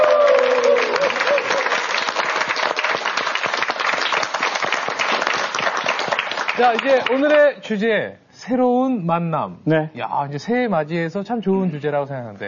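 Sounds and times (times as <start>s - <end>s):
audience applause: 0.0s - 7.4s
speech: 6.6s - 12.4s.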